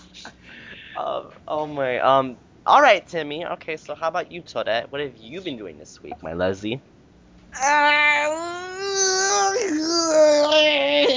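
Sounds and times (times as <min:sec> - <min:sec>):
speech: 0:01.0 - 0:06.9, 0:07.5 - 0:08.6
person yawning: 0:07.6 - 0:11.1.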